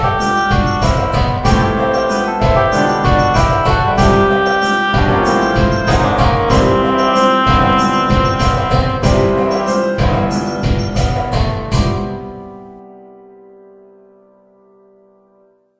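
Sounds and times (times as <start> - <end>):
bass drum practice: 0.0 - 12.2.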